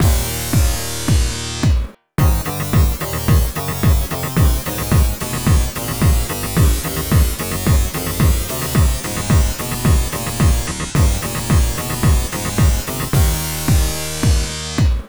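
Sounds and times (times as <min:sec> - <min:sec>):
bonus failed game jingle: 0:00.0 - 0:15.0.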